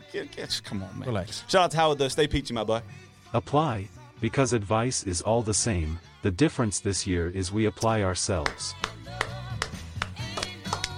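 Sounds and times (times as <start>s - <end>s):
speech: 0.1s - 9.3s
hand clapping: 8.4s - 10.9s.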